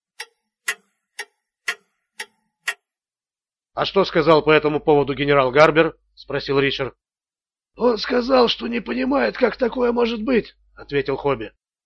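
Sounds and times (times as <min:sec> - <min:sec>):
clock ticking loudly in another room: 0:00.0 - 0:02.9
speech: 0:03.8 - 0:07.0, 0:07.8 - 0:11.8.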